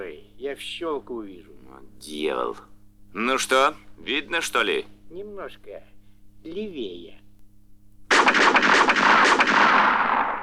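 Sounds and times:
speech: 0.2 - 7.2
pistol shots: 8.1 - 10.4.

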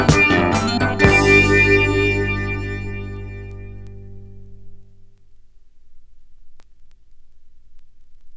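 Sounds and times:
honky tonk music: 0.0 - 4.8.

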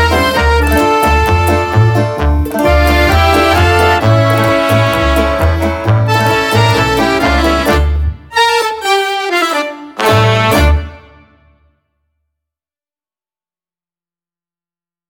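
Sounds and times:
tango music: 0.0 - 11.3.

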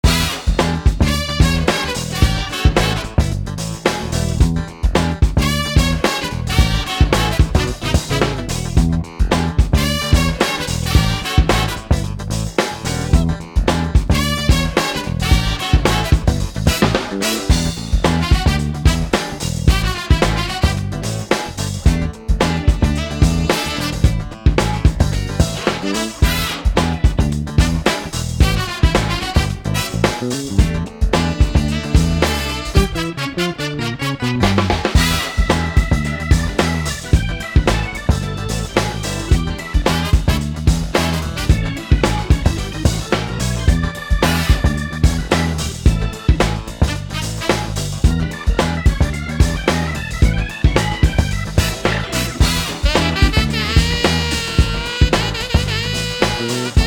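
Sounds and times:
funky noises: 0.0 - 56.8.

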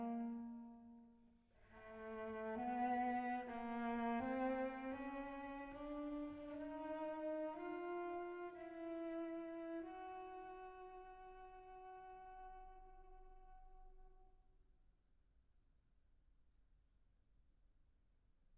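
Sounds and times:
solo violoncello playing staccato and legato: 1.8 - 11.0.

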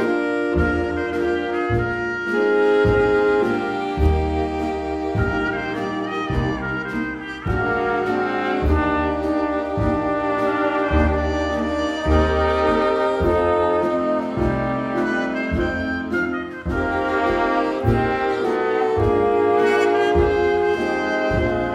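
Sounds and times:
jazz orchestra playing: 0.0 - 21.7.

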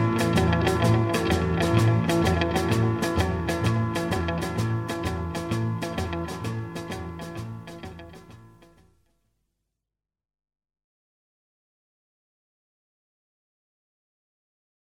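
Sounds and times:
riding guitars playing: 0.0 - 8.7.

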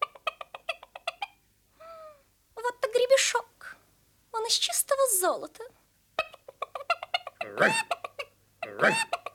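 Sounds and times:
hen clucking loudly with harsh squawks: 0.0 - 1.4, 6.2 - 9.3
speech: 4.5 - 5.8, 7.5 - 8.0, 8.8 - 9.2.

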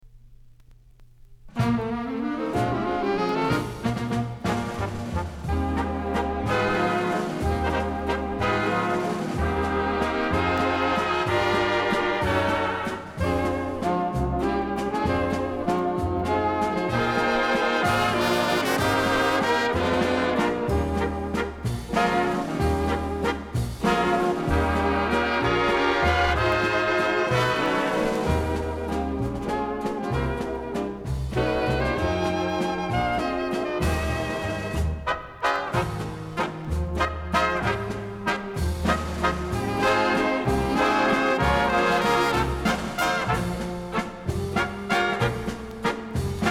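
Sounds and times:
dance orchestra playing a waltz: 1.6 - 46.4.

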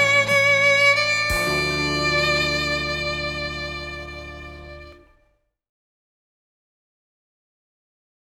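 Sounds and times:
tango music: 0.0 - 5.0.

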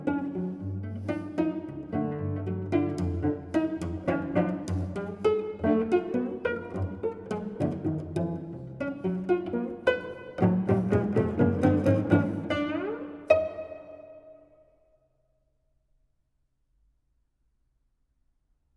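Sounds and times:
string quartet playing arco and pizzicato: 0.0 - 14.4.

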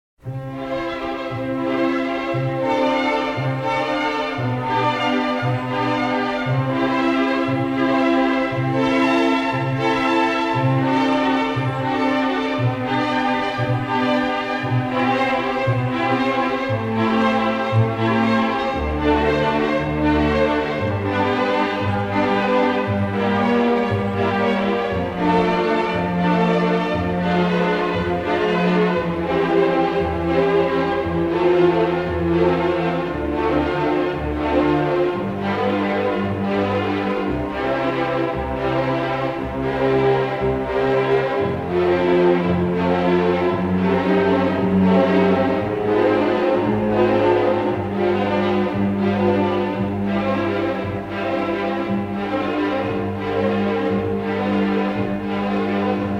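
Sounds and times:
prelude in C major: 0.2 - 56.1.

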